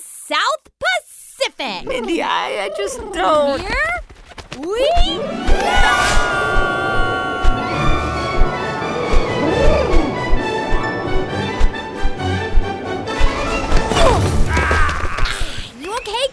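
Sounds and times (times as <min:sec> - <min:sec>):
speech: 0:00.3 - 0:00.8, 0:01.5 - 0:03.9, 0:04.6 - 0:06.8
aircraft engine droning: 0:07.6 - 0:13.9
aircraft crash landing impact: 0:13.8 - 0:15.4.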